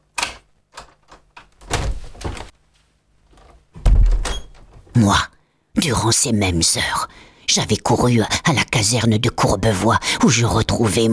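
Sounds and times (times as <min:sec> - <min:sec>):
door being opened wide: 0:00.2 - 0:02.6, 0:03.3 - 0:05.0
speech: 0:05.0 - 0:11.1.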